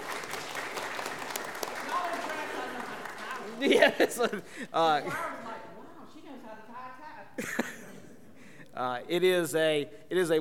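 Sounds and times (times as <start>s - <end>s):
audience applause: 0.0s - 4.3s
laughter: 1.8s - 5.5s, 7.4s - 8.3s
speech: 3.6s - 5.4s, 8.8s - 10.3s.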